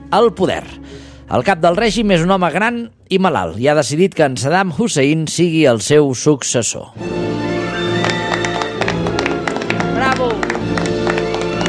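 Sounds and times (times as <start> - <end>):
speech: 0.1 - 7.9
audience applauding: 7.4 - 11.6.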